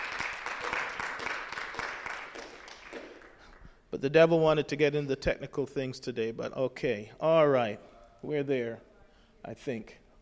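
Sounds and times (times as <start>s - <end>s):
audience applause: 0.0s - 3.6s
speech: 4.0s - 10.0s.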